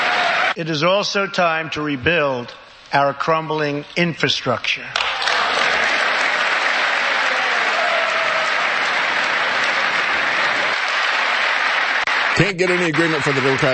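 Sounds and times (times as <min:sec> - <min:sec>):
audience applause: 0:00.0 - 0:00.6, 0:05.0 - 0:13.7
speech: 0:00.6 - 0:05.2, 0:12.4 - 0:13.7.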